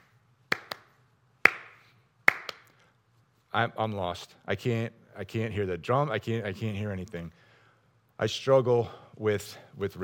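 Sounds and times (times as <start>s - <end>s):
fancy hand clap: 0.0s - 2.8s
speech: 3.6s - 7.4s, 8.2s - 10.0s.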